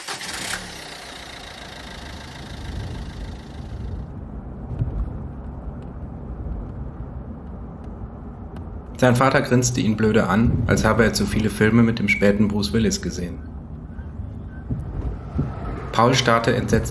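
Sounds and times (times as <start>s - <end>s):
SUV engine pulling away: 0.0s - 16.8s
speech: 9.0s - 13.5s, 16.0s - 16.8s.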